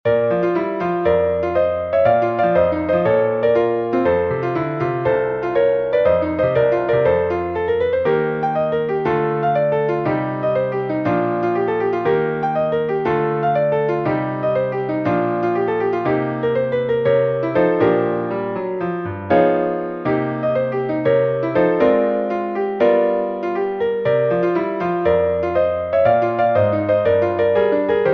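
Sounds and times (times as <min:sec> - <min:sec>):
jazz exercise: 0:00.0 - 0:28.1.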